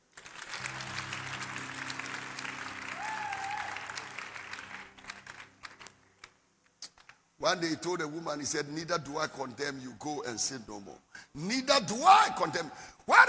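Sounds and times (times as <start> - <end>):
audience clapping: 0.0 - 7.2
speech: 7.4 - 13.2.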